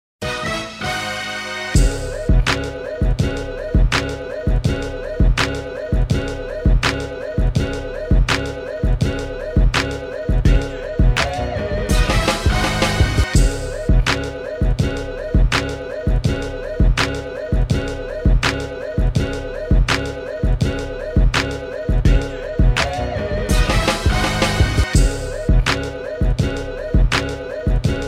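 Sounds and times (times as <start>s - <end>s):
instrumental music: 0.2s - 28.0s.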